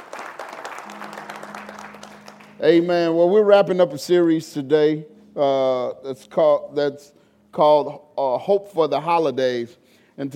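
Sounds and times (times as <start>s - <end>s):
audience applause: 0.0s - 2.6s
speech: 2.6s - 10.3s.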